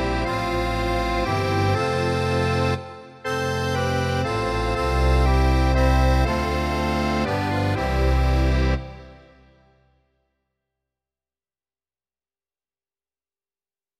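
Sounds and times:
double bass: 0:00.0 - 0:09.3
accordion: 0:00.0 - 0:09.9.

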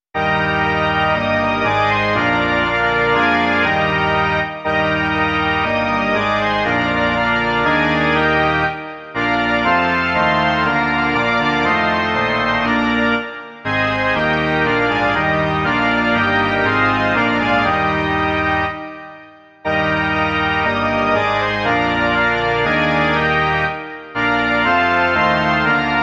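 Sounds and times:
organ: 0:00.1 - 0:26.0.

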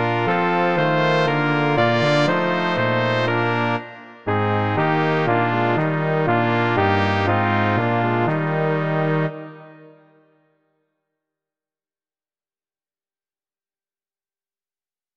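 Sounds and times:
brass quartet: 0:00.0 - 0:10.1.

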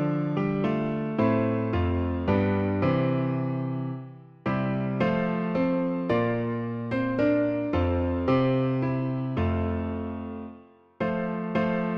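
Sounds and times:
piano version of a hymn: 0:00.0 - 0:11.9.

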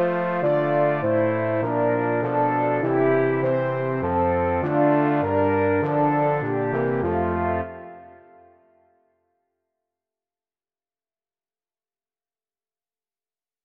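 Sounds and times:
trombone: 0:00.0 - 0:08.7
tuba: 0:00.0 - 0:08.8
two French horns: 0:00.0 - 0:08.9.

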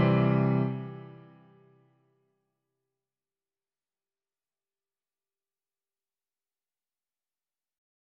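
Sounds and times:
piano: 0:00.0 - 0:01.8.

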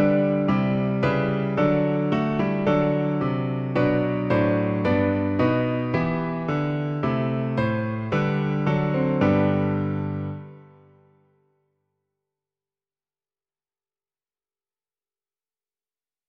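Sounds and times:
piano: 0:00.0 - 0:11.7.

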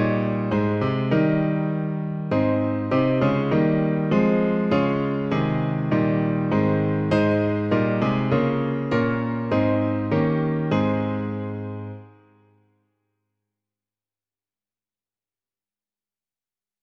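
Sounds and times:
piano: 0:00.0 - 0:12.9.

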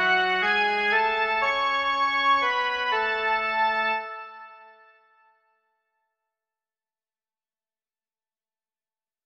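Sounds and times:
melody: 0:00.0 - 0:04.8.

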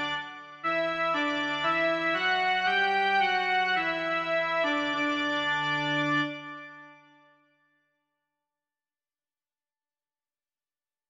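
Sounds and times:
hymn melody only: 0:00.0 - 0:07.1.

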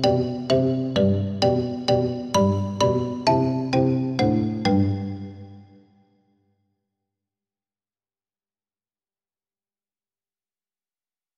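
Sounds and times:
xylophone: 0:00.0 - 0:05.7.

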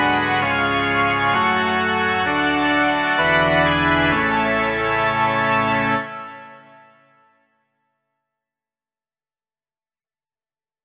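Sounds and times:
organ: 0:00.0 - 0:07.1.

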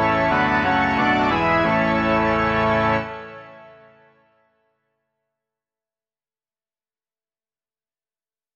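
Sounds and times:
organ: 0:00.0 - 0:04.0.

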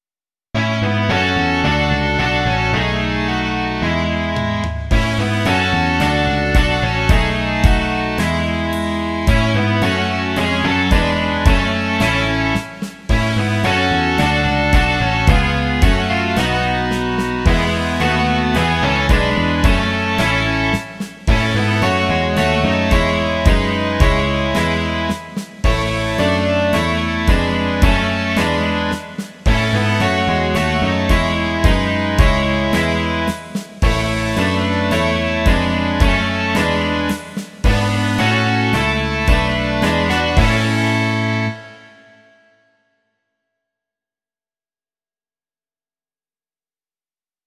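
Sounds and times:
rock music: 0:00.6 - 0:42.1.

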